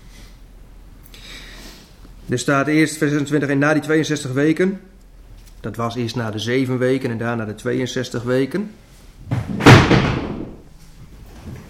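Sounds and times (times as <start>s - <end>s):
speech: 2.3s - 4.9s, 5.6s - 10.1s
coat rack falling over: 9.2s - 10.6s.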